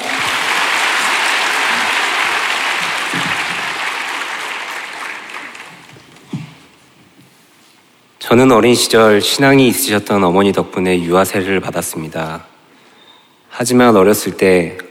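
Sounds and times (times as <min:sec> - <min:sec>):
welcoming applause: 0:00.0 - 0:06.2
speech: 0:08.3 - 0:12.5, 0:13.6 - 0:14.8.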